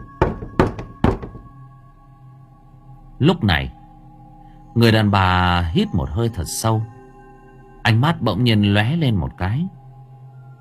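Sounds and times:
woman knocking on a door late at night: 0.0s - 1.5s
speech: 3.2s - 3.8s, 4.8s - 7.0s, 7.9s - 9.8s.

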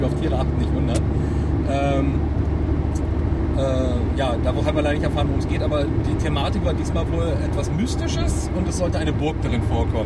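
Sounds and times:
speech: 0.0s - 1.1s, 3.6s - 10.0s
car engine and road rumble driving at night: 0.0s - 10.0s.

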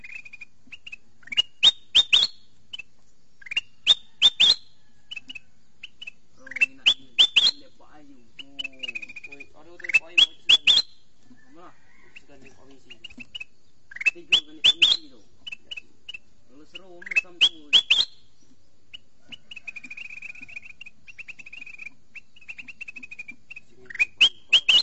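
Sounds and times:
sooty-headed bulbul whistled calls: 0.0s - 24.8s.

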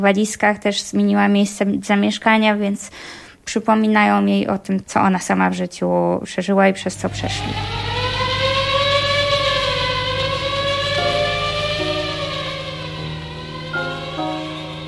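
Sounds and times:
speech: 0.0s - 8.0s
air raid siren wailing, warning of approaching aircraft: 6.8s - 14.8s
low steady drone: 6.9s - 14.8s.

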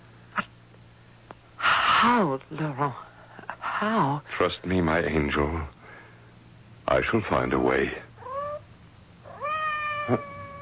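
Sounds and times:
speech: 2.0s - 3.1s, 3.8s - 5.8s, 6.9s - 8.1s, 10.1s - 10.3s
cat meowing outside a door: 8.2s - 8.6s, 9.3s - 10.6s.

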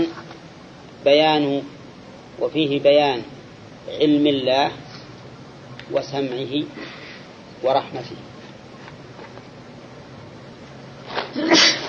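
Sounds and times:
speech: 1.0s - 1.8s, 2.4s - 3.3s, 3.9s - 4.9s, 5.9s - 7.0s, 7.6s - 8.3s
person sneezing during a religious lecture: 11.1s - 11.8s.

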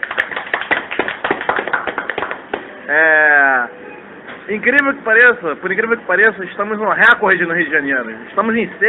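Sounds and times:
small group clapping: 0.0s - 2.8s
speech: 2.9s - 3.8s, 4.5s - 8.8s.

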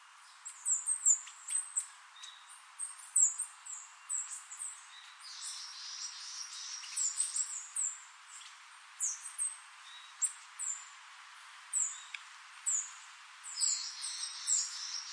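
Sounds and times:
bird song with high thin chirps and twittering trills: 0.2s - 10.9s, 11.8s - 15.1s.

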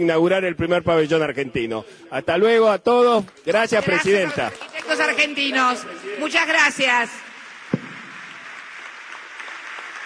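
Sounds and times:
speech: 0.0s - 7.3s
loud applause: 3.5s - 10.0s.

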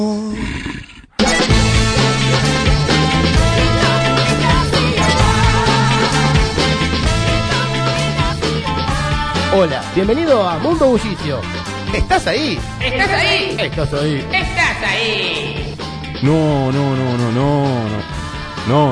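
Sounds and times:
wolf growl effect: 0.3s - 1.2s
loud dense music with a driving repeating bass line: 1.2s - 18.8s
speech: 9.6s - 18.9s.

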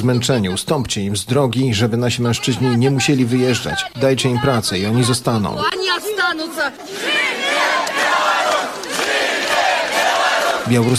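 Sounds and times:
speech: 0.0s - 8.8s, 10.7s - 10.9s
protesters shouting at a street demonstration: 2.4s - 10.9s.

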